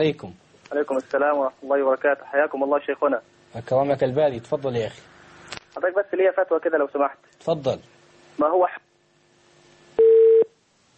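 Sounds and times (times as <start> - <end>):
speech: 0.0 - 5.2, 5.8 - 8.8
telephone tone after a call is cut off: 10.0 - 10.5.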